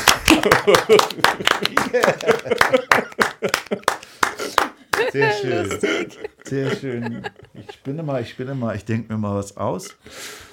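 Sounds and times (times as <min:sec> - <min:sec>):
applause: 0:00.0 - 0:05.2
laughter: 0:00.1 - 0:08.3
speech: 0:00.4 - 0:03.8, 0:05.1 - 0:10.5.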